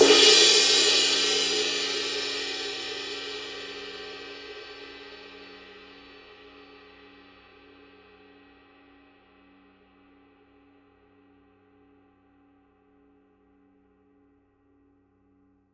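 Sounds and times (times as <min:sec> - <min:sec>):
ride cymbal edge hit: 0:00.0 - 0:05.2.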